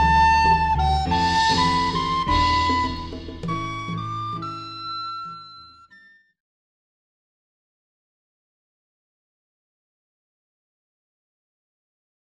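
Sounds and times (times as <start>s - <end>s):
flute: 0.0s - 6.4s.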